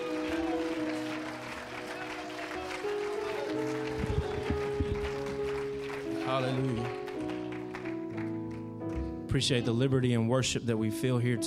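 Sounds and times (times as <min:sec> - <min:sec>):
audience applause: 0:00.0 - 0:09.2
held organ or keyboard chords: 0:00.0 - 0:11.4
speech: 0:06.3 - 0:07.0, 0:09.3 - 0:11.4.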